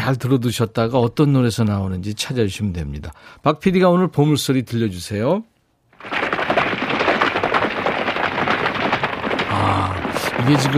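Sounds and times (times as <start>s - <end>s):
speech: 0.0s - 6.2s, 10.4s - 10.7s
several horses galloping: 6.0s - 10.7s.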